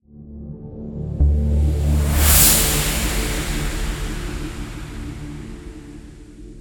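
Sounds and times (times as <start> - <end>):
transition sound: 1.2 - 6.5.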